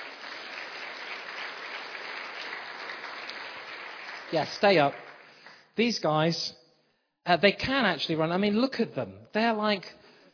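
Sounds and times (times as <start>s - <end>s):
audience applause: 0.0s - 5.7s
speech: 4.3s - 5.0s, 5.8s - 6.6s, 7.2s - 10.0s.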